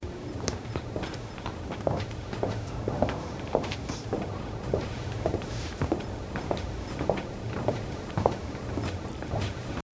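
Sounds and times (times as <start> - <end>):
astronaut footsteps: 0.3 - 9.8.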